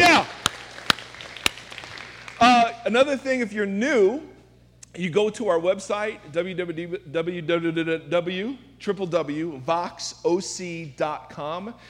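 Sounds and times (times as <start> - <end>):
audience clapping: 0.0 - 2.9
speech: 2.4 - 4.3, 4.9 - 11.8.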